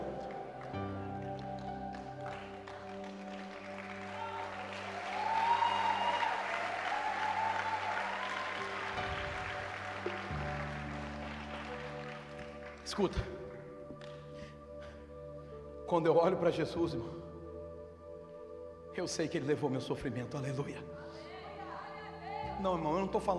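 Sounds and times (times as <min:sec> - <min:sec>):
audience applauding: 0:00.0 - 0:14.2
speech: 0:13.0 - 0:13.4, 0:15.9 - 0:17.3, 0:19.0 - 0:21.0, 0:22.6 - 0:23.3.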